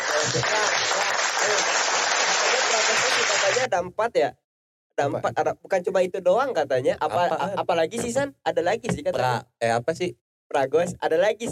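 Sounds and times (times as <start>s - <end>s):
group applause: 0.0s - 3.7s
speech: 3.8s - 4.4s, 5.0s - 11.5s.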